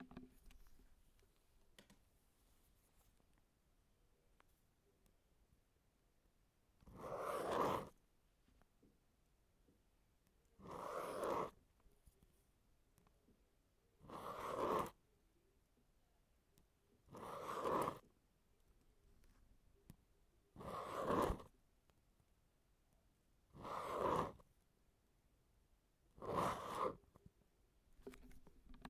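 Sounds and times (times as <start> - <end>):
pen drawing circles on paper: 6.7 - 8.1, 10.2 - 13.2, 14.0 - 15.0, 16.6 - 18.3, 19.2 - 21.6, 23.5 - 24.6, 26.1 - 27.2.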